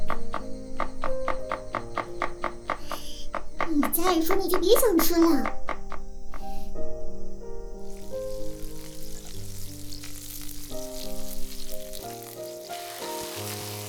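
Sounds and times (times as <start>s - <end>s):
gentle melody of sustained notes: 0.0s - 13.8s
speech: 4.0s - 5.6s
food frying in a pan during home cooking: 7.8s - 13.8s.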